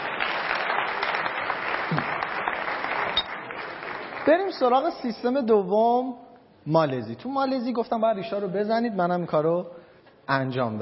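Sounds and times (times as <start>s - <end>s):
group applause: 0.0s - 4.7s
speech: 1.9s - 2.1s, 4.2s - 10.8s.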